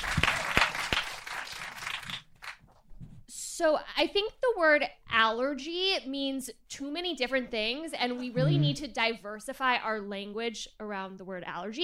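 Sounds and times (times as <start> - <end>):
applause from a small audience: 0.0 - 2.6
speech: 3.6 - 11.8.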